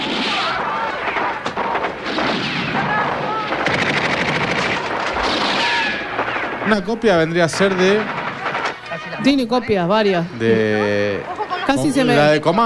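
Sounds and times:
gunshots in a played film excerpt: 0:00.0 - 0:09.5
speech: 0:06.7 - 0:08.2, 0:09.2 - 0:12.6
laughter: 0:06.9 - 0:12.6.

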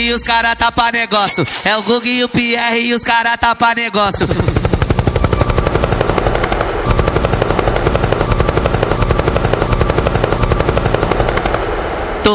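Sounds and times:
speech: 0:00.0 - 0:04.5
helicopter rotor: 0:04.1 - 0:12.2.

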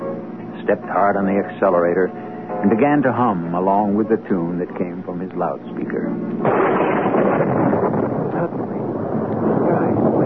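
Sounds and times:
speech: 0:00.7 - 0:07.0
mighty crash of thunder: 0:06.4 - 0:10.2.

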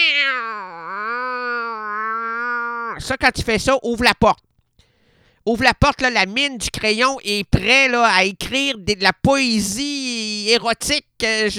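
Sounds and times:
cat meowing: 0:00.0 - 0:03.0
speech: 0:03.1 - 0:04.5, 0:05.4 - 0:11.5.

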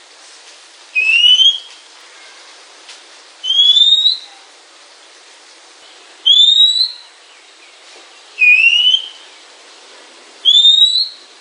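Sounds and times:
Oriental magpie-robin calls: 0:01.0 - 0:01.8, 0:03.4 - 0:04.3, 0:06.2 - 0:07.1, 0:08.4 - 0:09.2, 0:10.4 - 0:11.2.

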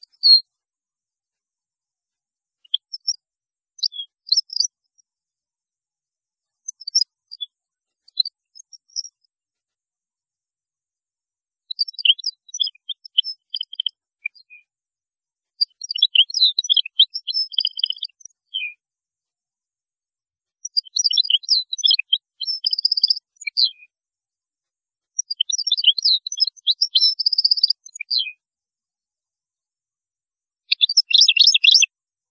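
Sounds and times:
European goldfinch twittering song: 0:00.0 - 0:00.4, 0:02.7 - 0:03.2, 0:03.8 - 0:04.7, 0:06.6 - 0:07.5, 0:08.1 - 0:09.2, 0:11.7 - 0:14.7, 0:15.6 - 0:18.8, 0:20.6 - 0:23.9, 0:25.2 - 0:28.4, 0:30.7 - 0:31.9.

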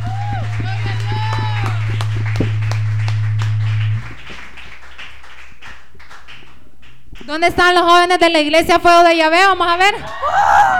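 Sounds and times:
audience applauding loudly: 0:00.0 - 0:07.3
speech: 0:07.4 - 0:10.7.

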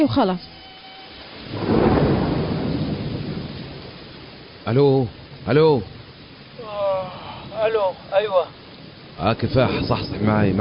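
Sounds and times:
speech: 0:00.0 - 0:00.6, 0:04.7 - 0:06.0, 0:07.6 - 0:08.6, 0:09.2 - 0:10.5
heavy rain pouring in cold weather: 0:00.0 - 0:10.5
deep roll of thunder: 0:01.3 - 0:10.5.

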